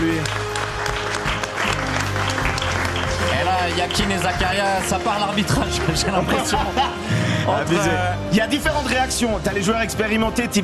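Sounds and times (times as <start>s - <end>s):
applause: 0.0s - 6.8s
laughter: 3.5s - 8.1s
speech: 3.9s - 10.6s.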